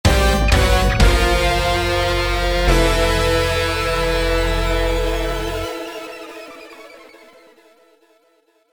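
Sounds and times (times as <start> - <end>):
fail sound: 0.0 - 6.2.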